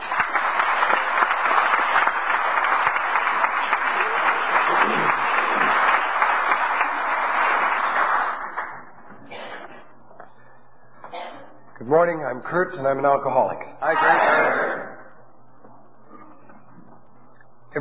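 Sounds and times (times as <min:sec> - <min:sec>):
audience applause welcoming a priest at an Alcoholics Anonymous gathering: 0:00.0 - 0:08.9
speech: 0:12.4 - 0:14.8.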